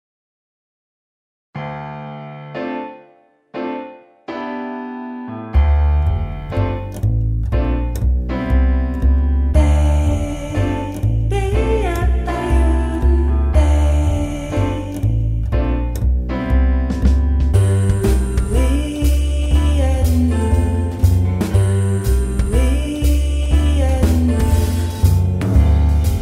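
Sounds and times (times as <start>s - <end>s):
blue jazz music: 5.6s - 26.2s.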